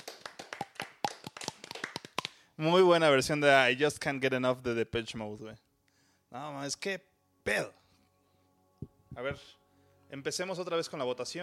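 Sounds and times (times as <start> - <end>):
brisk hand clapping: 0.0 - 2.5
speech: 2.6 - 5.6, 6.3 - 7.8, 9.2 - 11.4.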